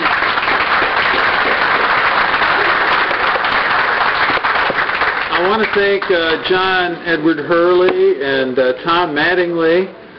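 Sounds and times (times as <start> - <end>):
audience applause welcoming a speaker at an event: 0.0 - 6.5
speech: 5.4 - 10.0.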